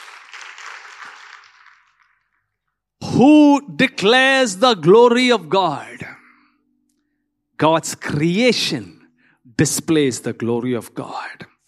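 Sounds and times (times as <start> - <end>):
audience clapping hands in praise: 0.0 - 2.6
speech: 3.2 - 5.9, 7.6 - 9.0, 9.6 - 11.5.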